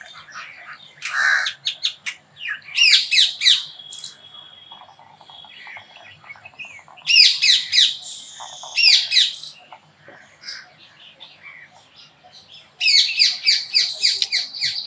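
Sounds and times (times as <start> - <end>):
hummingbird chattering calls: 0.0 - 9.8, 12.8 - 14.8.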